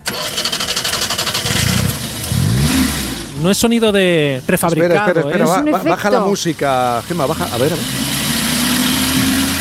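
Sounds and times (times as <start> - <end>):
car engine cranking and revving: 0.0 - 5.0, 6.0 - 9.5
speech: 3.4 - 8.1.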